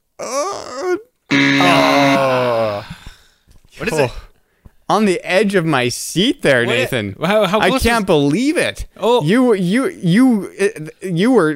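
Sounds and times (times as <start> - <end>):
speech: 0.2 - 1.1, 4.9 - 11.5
voice imitating a roaring bear: 0.2 - 3.0.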